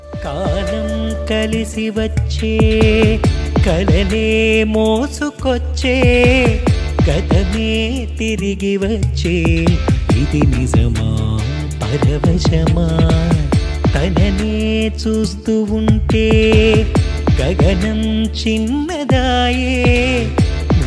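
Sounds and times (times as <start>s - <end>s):
Telugu love song: 0.0s - 20.8s.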